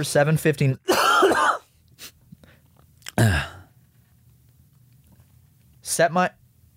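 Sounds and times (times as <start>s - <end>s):
low steady hum: 0.0s - 6.7s
person coughing: 0.9s - 1.7s, 3.1s - 3.7s.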